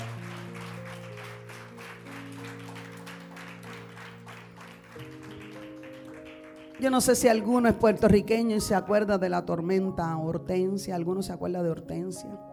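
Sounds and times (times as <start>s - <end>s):
audience applause: 0.0s - 7.3s
speech: 6.8s - 12.5s.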